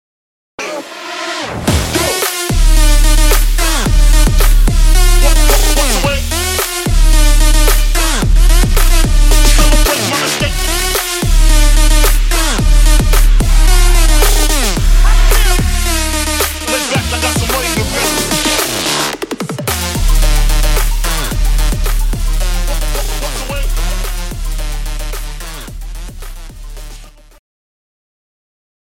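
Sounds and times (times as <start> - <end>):
trap remix: 0.6 - 27.4.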